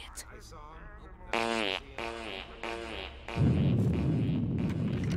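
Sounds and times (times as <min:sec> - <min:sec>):
fart with reverb: 0:01.3 - 0:05.1.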